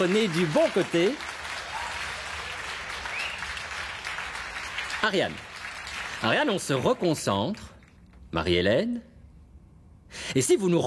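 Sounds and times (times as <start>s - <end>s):
speech: 0.0s - 1.3s, 5.0s - 5.5s, 6.2s - 7.7s, 8.3s - 9.1s, 10.1s - 10.8s
studio audience applause: 0.0s - 6.8s.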